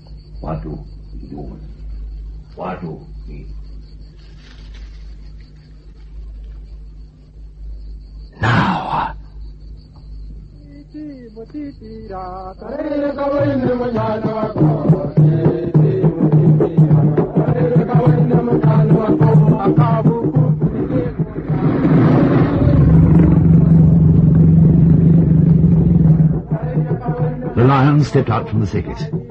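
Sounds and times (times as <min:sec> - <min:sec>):
speech: 0:00.4 - 0:01.8, 0:02.6 - 0:03.7, 0:11.4 - 0:15.9, 0:27.7 - 0:29.2
loud drumbeats: 0:13.4 - 0:29.2.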